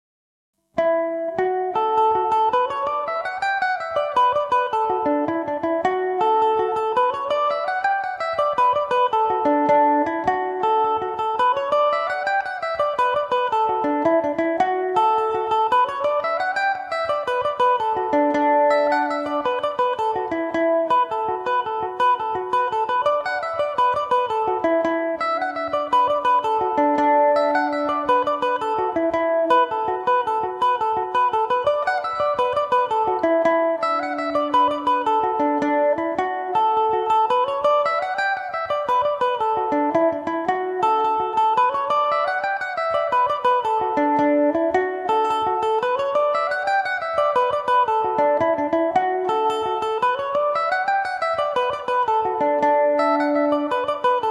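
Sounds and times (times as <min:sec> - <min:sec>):
mandolin folk tune in D major: 0:00.7 - 0:54.2.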